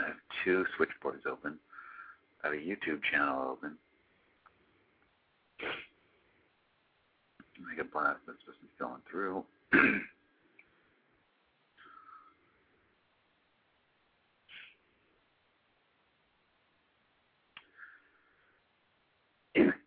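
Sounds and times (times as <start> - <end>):
speech: 0.4 - 1.7, 2.4 - 3.9, 7.6 - 10.2
person coughing: 9.7 - 10.2, 19.6 - 19.8
throat clearing: 9.7 - 10.2, 19.6 - 19.8.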